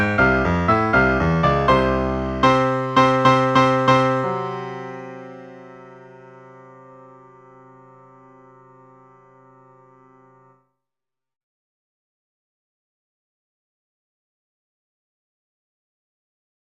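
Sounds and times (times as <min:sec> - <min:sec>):
moderately fast instrumental music: 0:00.0 - 0:10.6.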